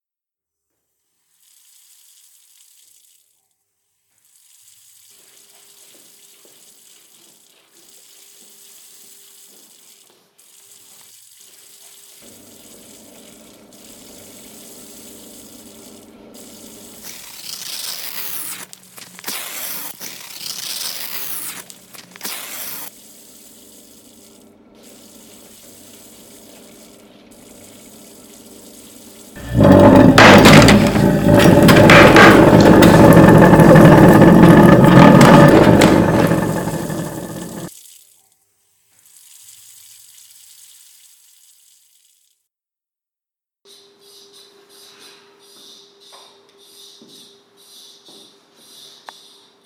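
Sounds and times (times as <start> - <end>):
thunderstorm: 29.4 - 37.7.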